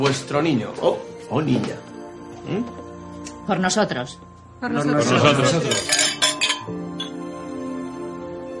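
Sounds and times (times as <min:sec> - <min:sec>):
speech: 0:00.0 - 0:02.8, 0:03.5 - 0:06.8
glasses clinking in a toast: 0:05.4 - 0:07.3.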